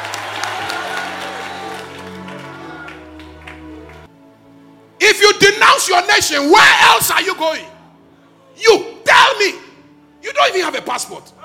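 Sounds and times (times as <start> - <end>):
church congregation clapping hands: 0.0 - 4.1
speech: 5.1 - 7.7, 8.6 - 9.6, 10.4 - 11.4.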